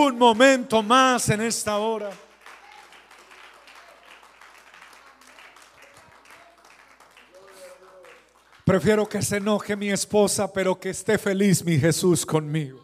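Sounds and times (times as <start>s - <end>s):
speech: 0.0s - 2.3s, 8.7s - 12.8s
audience applause: 0.0s - 9.4s.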